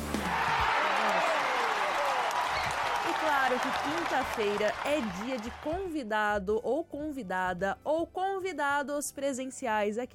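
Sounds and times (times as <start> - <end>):
applause: 0.0 - 6.0
speech: 3.5 - 10.1.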